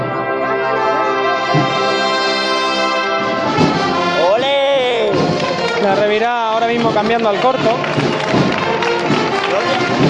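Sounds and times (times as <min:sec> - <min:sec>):
loud dense crowd noise at a Holy Thursday procession in Jaén: 0:00.0 - 0:10.0
townspeople of Jaén clapping to cheer on women float-bearers during a Holy Thursday procession: 0:03.5 - 0:10.0
speech: 0:05.8 - 0:08.1.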